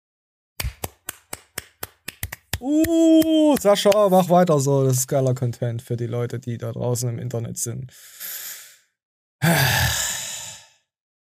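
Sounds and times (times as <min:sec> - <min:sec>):
hands clapping: 0:00.6 - 0:04.4
speech: 0:02.6 - 0:08.5, 0:09.4 - 0:09.8.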